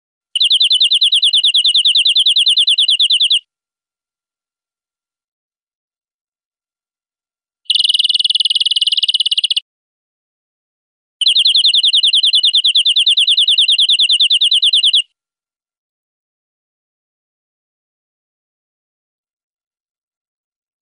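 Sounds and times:
European greenfinch buzzy trill: 0.4 - 3.4, 7.7 - 9.6, 11.2 - 15.0.

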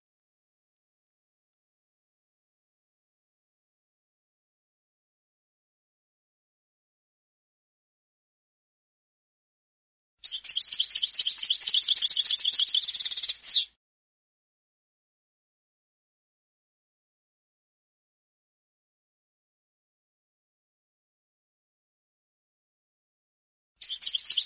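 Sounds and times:
European goldfinch song: 10.2 - 13.7, 23.8 - 24.4.

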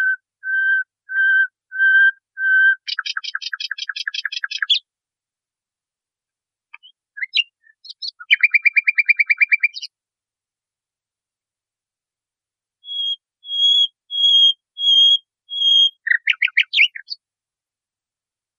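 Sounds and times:
nightingale song: 0.0 - 4.8, 6.8 - 9.9, 12.8 - 17.2.

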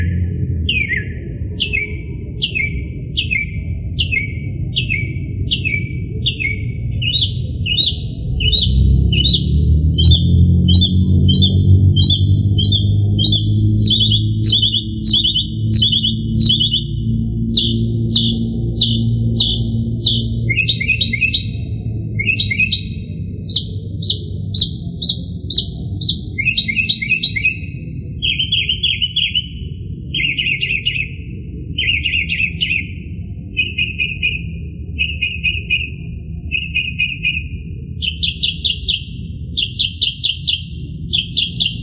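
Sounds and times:
northern mockingbird singing: 0.0 - 41.8.

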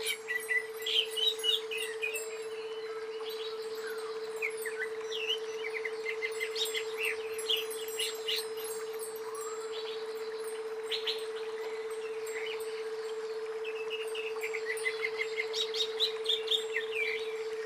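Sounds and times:
greater green leafbird song: 0.0 - 17.6.

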